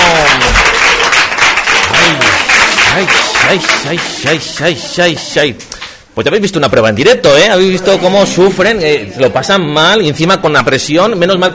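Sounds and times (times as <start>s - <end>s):
laughter: 0.0s - 5.6s, 7.5s - 9.5s
audience applause: 0.0s - 5.9s
speech: 3.0s - 11.5s.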